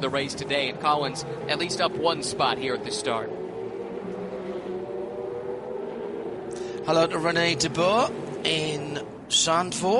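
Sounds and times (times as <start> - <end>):
speech: 0.0 - 3.5, 6.9 - 9.9
number 60 race car driving in and out of the pit lane: 0.0 - 9.9.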